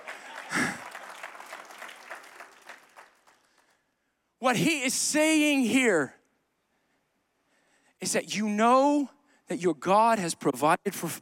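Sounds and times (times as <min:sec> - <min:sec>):
audience clapping: 0:00.0 - 0:03.8
speech: 0:04.4 - 0:06.2, 0:08.0 - 0:11.2.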